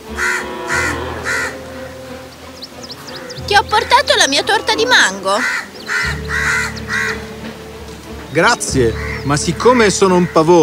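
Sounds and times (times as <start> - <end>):
crow cawing: 0.0 - 7.6, 8.9 - 9.3
speech: 3.5 - 6.2, 8.4 - 10.6.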